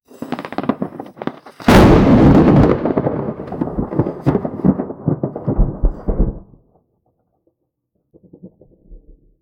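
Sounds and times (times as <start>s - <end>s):
lightning strike: 1.6s - 6.5s.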